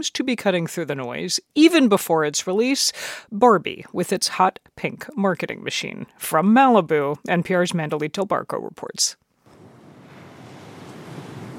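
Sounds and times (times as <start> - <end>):
speech: 0.0 - 9.2
surf waves at the beach in Malibu: 9.5 - 11.5.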